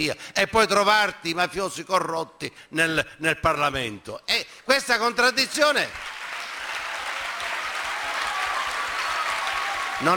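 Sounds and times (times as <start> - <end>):
speech: 0.0 - 6.1
audience applause: 5.9 - 10.1.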